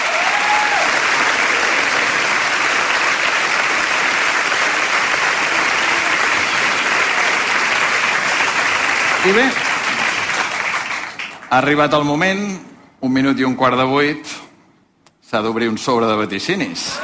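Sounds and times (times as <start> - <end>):
audience applause: 0.0 - 11.7
speech: 9.2 - 9.7, 11.5 - 14.4, 15.3 - 17.0.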